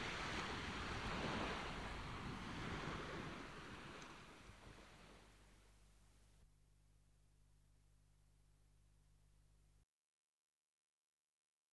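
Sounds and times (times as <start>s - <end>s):
sea surf backwash on a beach: 0.0s - 5.5s.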